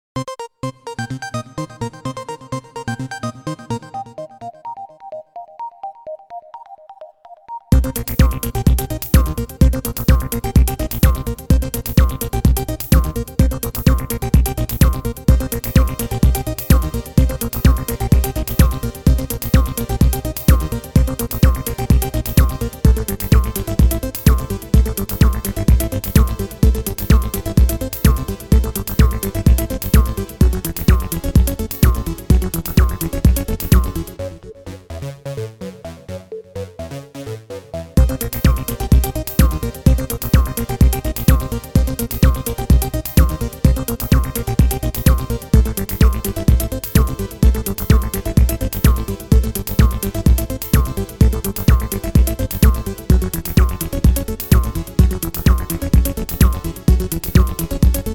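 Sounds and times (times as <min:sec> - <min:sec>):
Quasimidi Sirius electro synth: 0:00.2 - 0:58.1.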